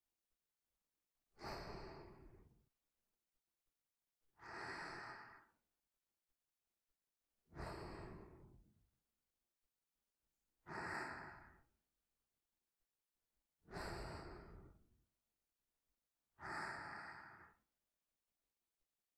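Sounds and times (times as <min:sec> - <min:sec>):
person breathing in sleep: 0:01.3 - 0:02.6, 0:04.4 - 0:05.6, 0:07.5 - 0:08.7, 0:10.6 - 0:11.7, 0:13.6 - 0:14.9, 0:16.4 - 0:17.7.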